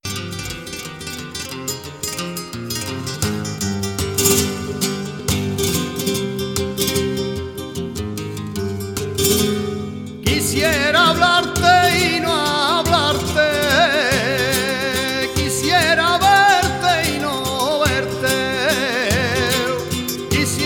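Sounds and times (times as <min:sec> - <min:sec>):
fandango music: 0:00.0 - 0:20.6.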